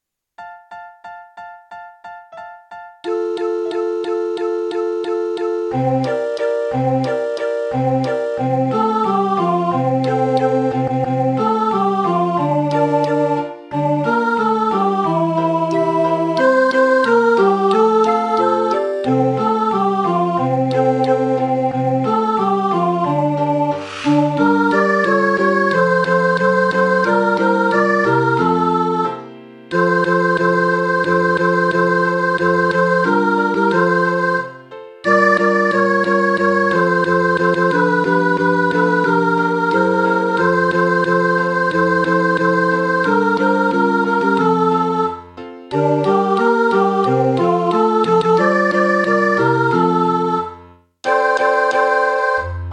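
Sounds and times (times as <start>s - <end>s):
tenor singing: 3.1s - 52.6s.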